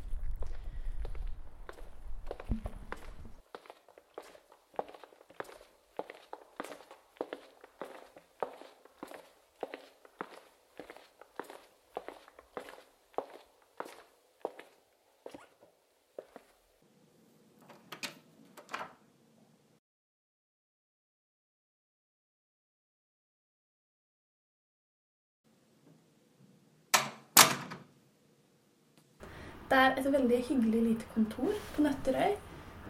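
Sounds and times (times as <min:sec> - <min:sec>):
soft footsteps walking into a small office on Nøtterøy: 0:00.0 - 0:16.7
speech: 0:29.7 - 0:32.4.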